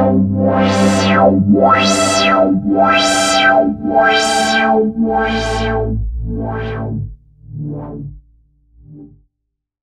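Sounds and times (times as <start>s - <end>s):
filtered Yamaha AN1x synth pad: 0.0s - 7.8s.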